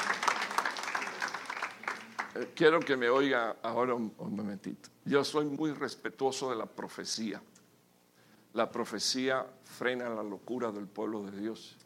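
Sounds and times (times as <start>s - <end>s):
audience applauding: 0.0s - 3.3s
speech: 2.4s - 7.5s, 8.5s - 11.8s.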